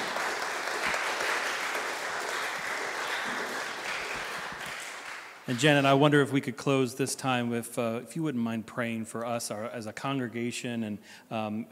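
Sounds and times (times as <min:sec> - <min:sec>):
crowd clapping: 0:00.0 - 0:06.0
speech: 0:05.5 - 0:11.6.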